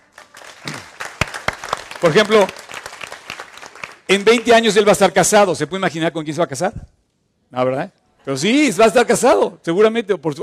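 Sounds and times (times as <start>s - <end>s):
applause from a small group: 0.0s - 4.8s
speech: 2.0s - 2.6s, 4.1s - 6.9s, 7.5s - 10.4s.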